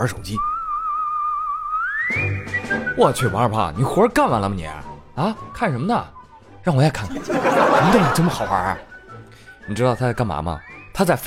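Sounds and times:
speech: 0.0 - 0.5, 3.0 - 8.9, 9.7 - 11.2
person whistling a tune: 0.4 - 3.3
laughter: 7.0 - 9.3.

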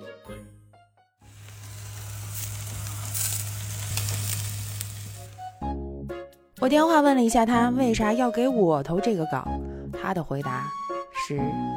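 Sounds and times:
barbecue meat sizzling on a stove: 1.3 - 5.6
speech: 6.6 - 11.7.

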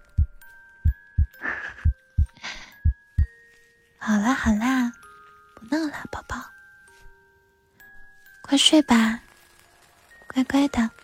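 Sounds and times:
heartbeat thumps: 0.0 - 3.3
soft breathy rustles: 1.2 - 11.0
speech: 4.1 - 5.0, 8.6 - 9.2, 10.4 - 11.0.

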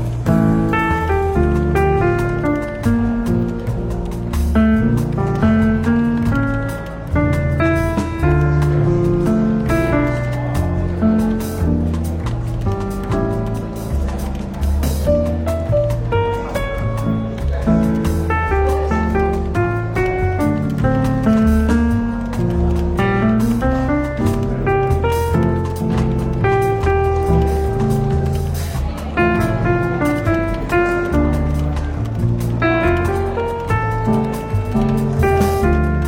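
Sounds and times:
faint murmured chatter: 0.0 - 36.0
soft jazz with bass and piano or guitar in a bookshop café: 0.0 - 36.0.

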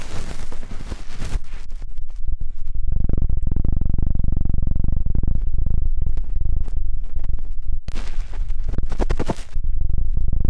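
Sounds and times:
ear cleaning scraping: 0.0 - 1.8, 7.9 - 9.6
low rumble: 0.0 - 10.4.

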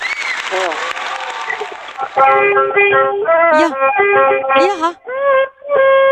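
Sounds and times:
audience applause: 0.0 - 2.5
speech: 0.5 - 0.9, 2.2 - 6.0.

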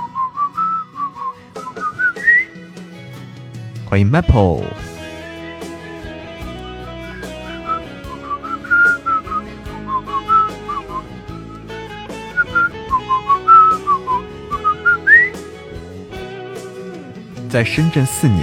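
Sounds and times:
person whistling: 0.0 - 2.6, 5.7 - 15.5
speech: 3.9 - 4.9, 17.6 - 18.4.

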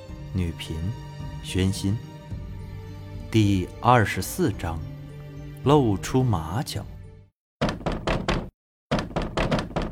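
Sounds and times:
speech: 0.4 - 2.1, 3.3 - 4.9, 5.6 - 6.9
heavy knocking on a door: 7.6 - 9.9.

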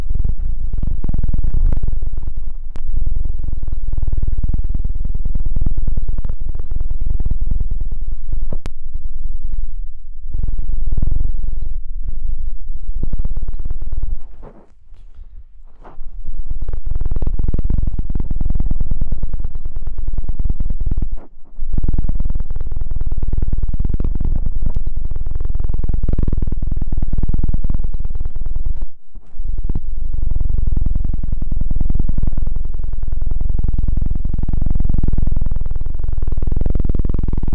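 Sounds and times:
crackling clicks: 0.0 - 3.0, 3.6 - 33.2
helicopter rumble and throb: 0.0 - 37.5.

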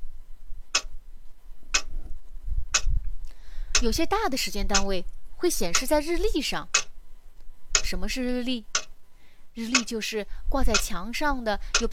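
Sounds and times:
clock ticking: 0.7 - 0.9, 1.7 - 1.9, 3.7 - 4.0, 4.7 - 5.0, 5.6 - 6.1, 6.7 - 7.0, 7.7 - 8.0, 8.7 - 8.9, 9.7 - 10.0, 10.6 - 11.0, 11.7 - 11.9
speech: 3.8 - 6.8, 7.9 - 8.7, 9.6 - 11.9.

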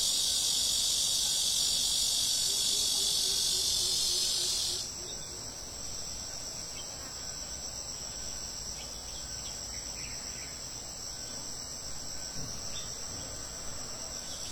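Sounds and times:
summer cicadas droning: 0.0 - 14.5.

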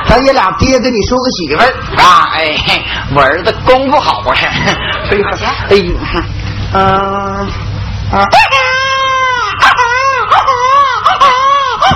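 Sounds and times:
speech: 0.2 - 8.6
infant-like crying in a northeastern Chinese folk stage skit: 8.3 - 11.9.

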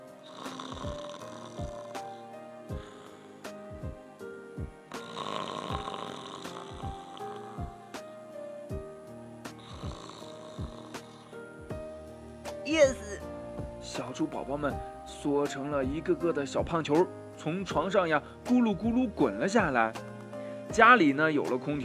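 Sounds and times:
snoring: 0.2 - 3.4, 4.9 - 7.9, 9.6 - 11.4
speech: 14.2 - 20.1, 20.8 - 21.8.

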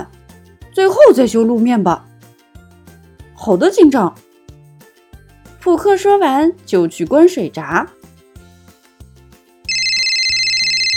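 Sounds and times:
speech: 0.8 - 2.1, 3.4 - 4.2, 5.6 - 8.0
loud electronic phone ringtone: 9.7 - 10.9.

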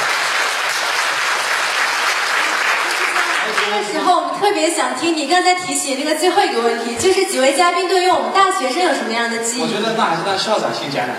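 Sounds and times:
audience applause: 0.0 - 4.2
speech: 3.7 - 11.1.

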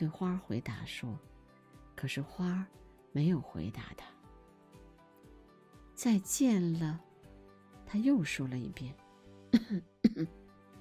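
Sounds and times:
speech: 0.0 - 1.3, 2.0 - 4.2, 6.0 - 7.1, 7.9 - 10.4
coughing: 9.6 - 10.4.

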